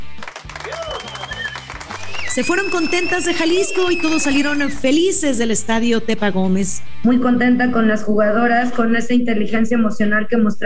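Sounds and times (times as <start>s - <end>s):
large stadium crowd applauding and cheering: 0.0s - 5.0s
whistles: 0.6s - 4.8s
speech: 2.4s - 10.6s.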